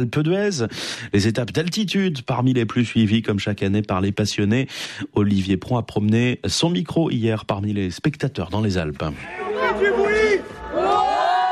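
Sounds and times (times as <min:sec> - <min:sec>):
speech: 0:00.0 - 0:10.2
excited children shouting awaiting bike race: 0:09.3 - 0:11.4.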